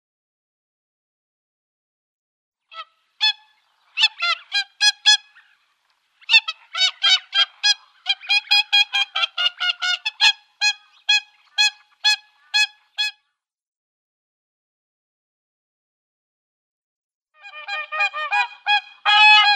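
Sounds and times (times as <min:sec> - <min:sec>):
whooper swan honking and trumpeting: 0:02.7 - 0:13.2, 0:17.4 - 0:19.5.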